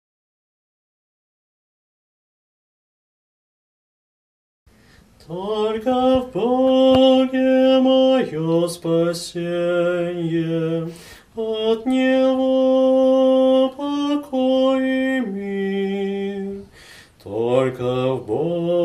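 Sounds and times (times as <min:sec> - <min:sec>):
tenor singing: 0:05.2 - 0:18.8.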